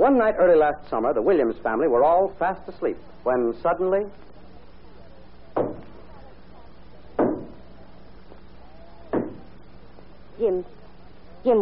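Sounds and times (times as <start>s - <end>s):
speech: 0.0s - 4.4s, 10.4s - 10.8s, 11.4s - 11.6s
steady low hiss: 0.0s - 11.6s
banging on a door: 5.6s - 6.0s, 7.2s - 7.6s, 9.1s - 9.5s.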